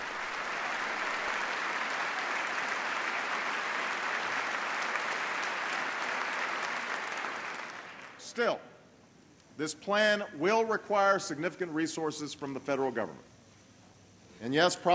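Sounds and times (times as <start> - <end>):
sustained applause from a large audience: 0.0 - 8.2
speech: 8.3 - 8.7, 9.6 - 13.3, 14.4 - 14.9.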